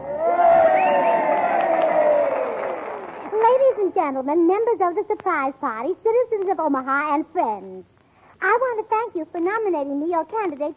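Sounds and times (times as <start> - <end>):
crowd cheering: 0.0 - 3.9
speech: 3.9 - 10.7.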